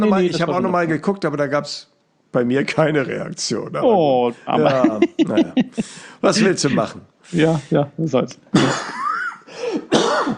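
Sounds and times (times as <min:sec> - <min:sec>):
speech: 0:00.0 - 0:09.0
laughter: 0:04.6 - 0:07.0
person giving a held-back cough: 0:08.5 - 0:10.3.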